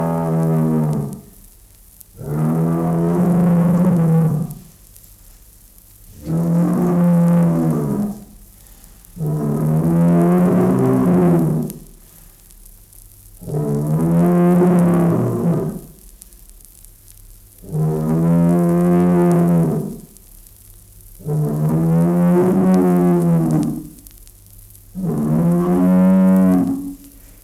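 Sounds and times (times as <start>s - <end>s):
bull mooing: 0.0s - 1.3s, 2.2s - 4.7s, 6.2s - 8.4s, 9.2s - 11.9s, 13.4s - 15.9s, 17.6s - 20.1s, 21.2s - 24.0s, 25.0s - 27.1s.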